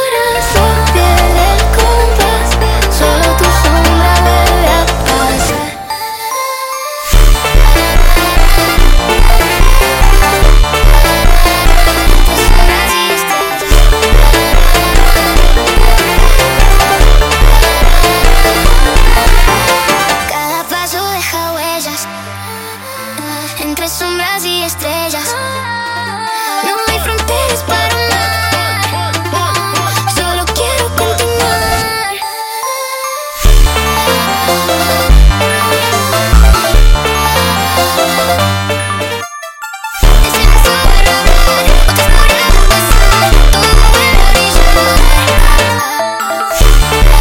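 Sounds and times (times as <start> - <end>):
sped up funk music: 0.2 - 5.9, 7.1 - 20.6, 26.7 - 32.0, 33.4 - 45.8, 46.6 - 47.2.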